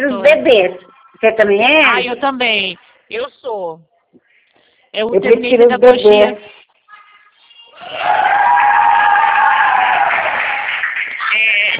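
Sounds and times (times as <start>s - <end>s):
speech: 0.0s - 3.9s, 5.0s - 6.6s
crowd cheering and shouting: 7.7s - 11.7s.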